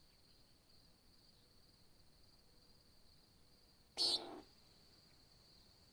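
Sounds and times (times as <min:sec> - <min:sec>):
nighthawk buzzy nasal calls: 0:04.0 - 0:04.5
high continuous insect trill: 0:04.0 - 0:04.8.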